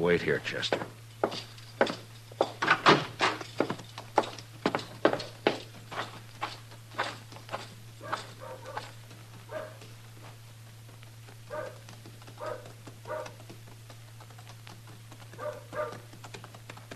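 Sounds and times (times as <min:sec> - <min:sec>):
speech: 0:00.0 - 0:01.4
horse hooves clopping along a street: 0:00.0 - 0:16.9
low constant hum: 0:00.0 - 0:16.9.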